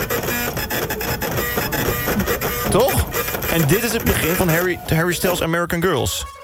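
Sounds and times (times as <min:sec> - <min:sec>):
receipt printer printing a receipt: 0:00.0 - 0:05.5
speech: 0:02.7 - 0:03.0, 0:03.6 - 0:06.4.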